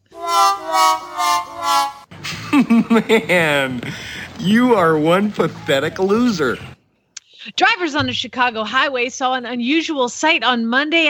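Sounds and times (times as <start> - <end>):
loser sound effect of descending brassy notes: 0.0 - 2.5
laughter: 2.2 - 6.7
speech: 2.6 - 6.7, 7.4 - 11.0.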